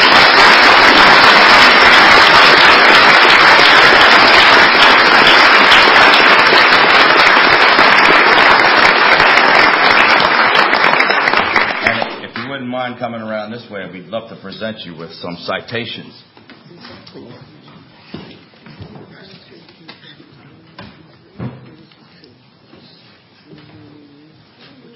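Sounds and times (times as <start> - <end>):
audience applause: 0.0 - 12.5
speech: 13.0 - 16.4.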